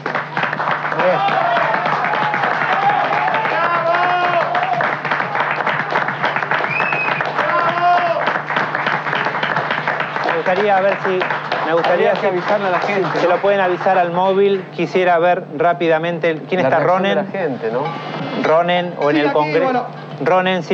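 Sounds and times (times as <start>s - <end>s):
crowd applause: 0.0s - 14.6s
shouts and raised voices: 0.9s - 5.5s, 7.4s - 8.4s
speech: 10.5s - 20.7s.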